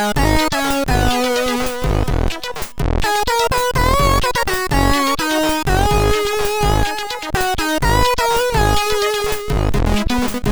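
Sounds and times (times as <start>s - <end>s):
test tune on MOS6581R3 SID chip: 0.0s - 10.5s.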